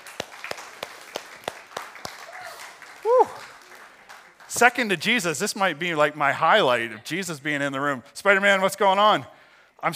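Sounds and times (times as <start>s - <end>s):
audience applause: 0.0s - 4.9s
speech: 4.6s - 9.9s.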